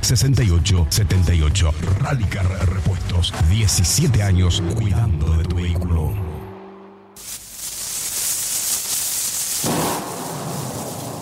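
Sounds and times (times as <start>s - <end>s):
speech: 0.1s - 6.2s
steady hissing rain: 7.2s - 11.1s
deeper rumbling roll: 9.6s - 11.1s.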